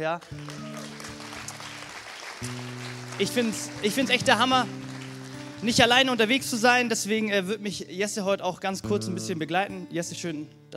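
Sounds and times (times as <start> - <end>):
speech: 0.0 - 0.9, 2.4 - 4.9, 5.6 - 10.7
audience applause: 0.0 - 6.2.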